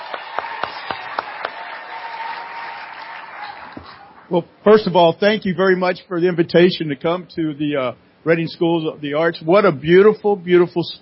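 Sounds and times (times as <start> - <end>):
audience applause: 0.0 - 4.3
speech: 4.3 - 11.0.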